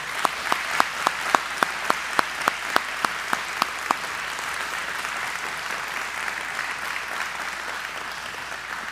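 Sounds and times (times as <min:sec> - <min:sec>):
audience applause: 0:00.0 - 0:08.8.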